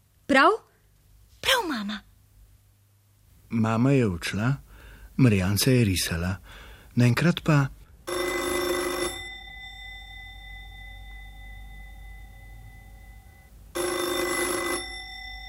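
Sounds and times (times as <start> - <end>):
speech: 0.3 - 0.6, 1.5 - 2.1, 3.5 - 4.6, 5.2 - 7.8
telephone ringing: 8.1 - 15.4.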